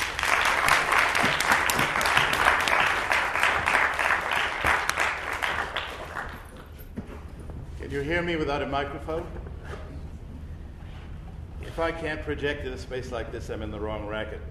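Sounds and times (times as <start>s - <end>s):
audience applause welcoming a professor before a talk on Chekhov: 0.0s - 6.8s
speech: 7.9s - 9.5s, 11.8s - 14.5s.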